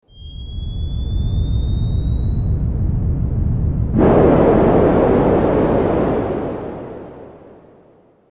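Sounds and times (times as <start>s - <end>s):
explosion: 0.1s - 8.0s.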